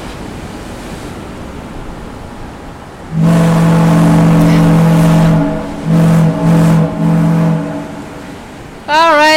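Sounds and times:
ship foghorn: 3.0s - 8.8s.

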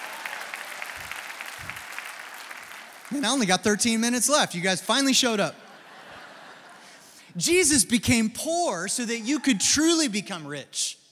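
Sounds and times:
audience applause: 0.0s - 4.1s
speech: 3.1s - 5.6s, 7.4s - 11.0s
laughter: 5.2s - 7.2s.

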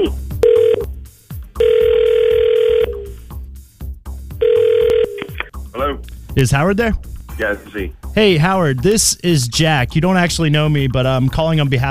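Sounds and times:
low rhythmic music bed: 0.0s - 11.8s
telephone call ringing: 0.4s - 0.9s, 1.6s - 3.1s, 4.4s - 5.5s
speech: 6.4s - 11.8s.

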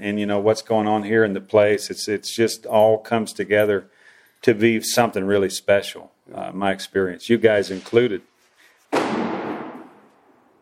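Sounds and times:
speech: 0.0s - 8.3s
firework boom in town: 8.9s - 10.5s.

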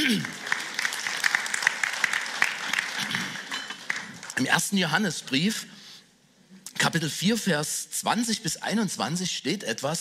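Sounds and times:
audience applauding: 0.0s - 4.4s
speech: 4.4s - 5.8s, 6.8s - 9.9s.

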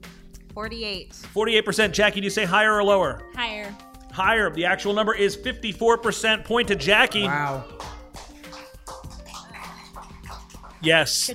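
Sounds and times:
speech: 0.6s - 7.8s, 10.8s - 11.3s
sparse polite hand claps: 6.6s - 11.1s.

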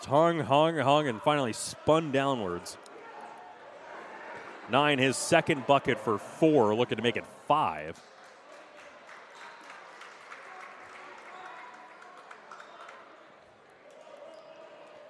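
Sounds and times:
speech: 0.0s - 2.8s, 4.7s - 8.1s
basketball crowd cheering: 0.0s - 15.0s
hands clapping: 7.8s - 13.2s.

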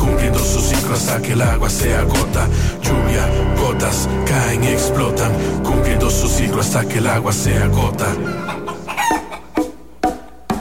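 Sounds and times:
speech: 0.4s - 8.8s
rooster crowing: 8.2s - 9.6s.

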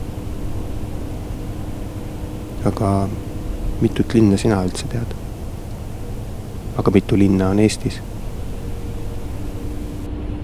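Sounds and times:
bus interior engine and road noise: 0.0s - 10.4s
speech: 2.6s - 5.2s, 6.8s - 8.1s.

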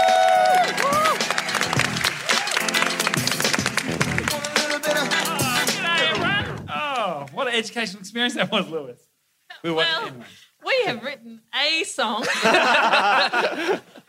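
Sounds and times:
audience applause: 0.0s - 7.2s
speech: 7.6s - 14.0s
laughter: 12.2s - 14.0s.

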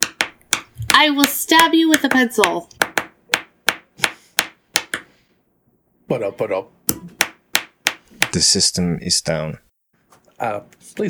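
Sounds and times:
ballpoint pens drumming on desk surface: 0.0s - 5.1s, 6.9s - 8.5s
speech: 1.0s - 2.8s, 6.1s - 7.2s, 8.4s - 9.7s, 10.4s - 11.0s.

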